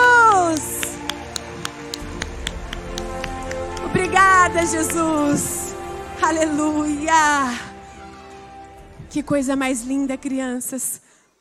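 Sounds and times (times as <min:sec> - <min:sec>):
audience applauding: 0:00.3 - 0:05.5
speech: 0:04.5 - 0:05.6, 0:06.2 - 0:07.7, 0:09.1 - 0:11.0.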